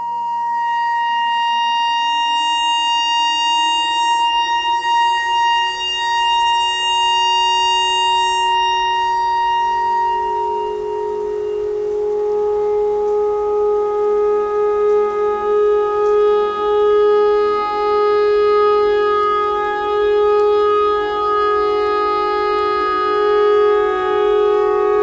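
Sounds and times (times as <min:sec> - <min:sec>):
clarinet notes imitating a tornado siren: 0:00.0 - 0:25.0.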